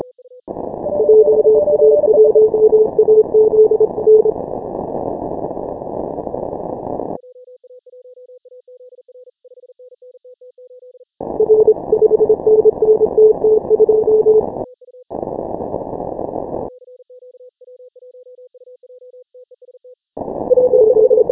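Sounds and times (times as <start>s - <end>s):
morse code beeps: 0.8s - 4.4s, 11.4s - 14.4s, 20.5s - 21.3s.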